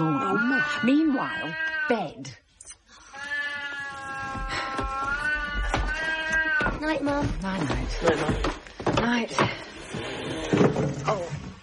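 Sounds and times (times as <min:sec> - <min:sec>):
cat meowing: 0:00.0 - 0:02.2, 0:03.2 - 0:06.8
speech: 0:00.7 - 0:02.4, 0:06.8 - 0:10.1, 0:11.0 - 0:11.5.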